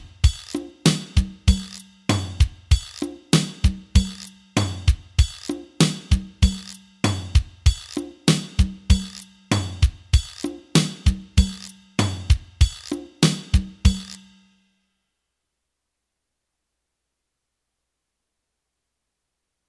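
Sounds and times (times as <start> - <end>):
slow Latin music: 0.1 - 14.4.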